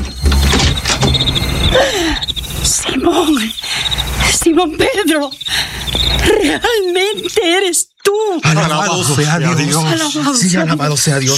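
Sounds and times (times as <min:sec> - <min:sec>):
door creaking open: 0:00.0 - 0:06.4
speech: 0:04.6 - 0:11.3.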